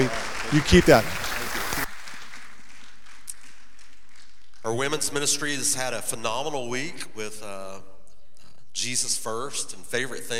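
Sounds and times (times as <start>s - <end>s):
speech: 0.0s - 1.2s, 4.7s - 7.9s, 8.8s - 10.3s
applause: 0.0s - 4.6s.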